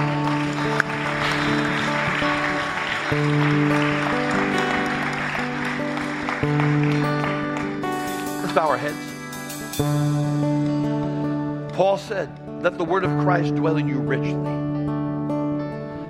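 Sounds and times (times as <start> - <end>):
audience clapping: 0.0 - 9.9
sustained organ or keyboard chords: 0.0 - 16.0
speech: 12.0 - 14.6.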